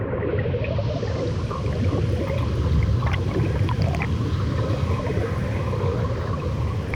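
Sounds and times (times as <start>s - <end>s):
water sound effects: 0.2s - 6.9s.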